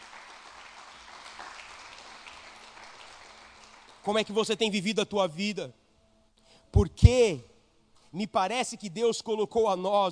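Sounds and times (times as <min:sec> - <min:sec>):
applause: 0:00.0 - 0:04.5
speech: 0:04.0 - 0:05.8, 0:06.7 - 0:07.5, 0:08.1 - 0:10.0.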